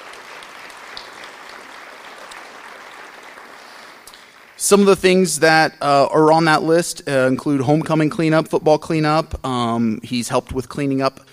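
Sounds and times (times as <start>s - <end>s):
round of applause: 0.0s - 5.2s
speech: 4.6s - 11.3s.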